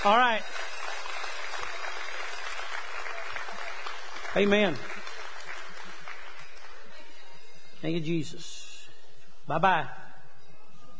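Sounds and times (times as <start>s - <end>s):
speech: 0.0s - 0.7s, 4.4s - 5.0s, 7.8s - 8.6s, 9.5s - 10.0s
audience applause: 0.0s - 6.9s.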